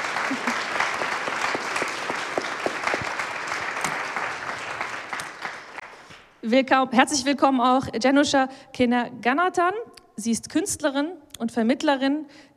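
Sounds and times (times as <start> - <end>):
audience applause: 0.0 - 6.2
speech: 6.5 - 12.5.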